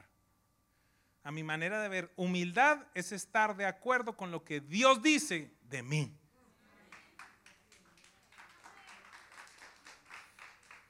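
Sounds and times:
speech: 1.2s - 6.2s
quiet golf-style applause: 6.8s - 10.8s.

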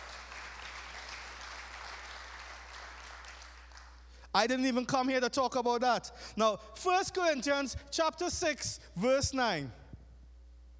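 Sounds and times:
round of applause: 0.0s - 4.1s
speech: 4.4s - 9.8s.

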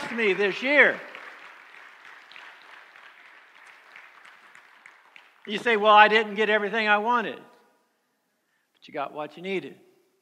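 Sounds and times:
audience clapping: 0.0s - 6.4s
speech: 0.1s - 1.1s, 5.5s - 7.5s, 8.8s - 9.9s.

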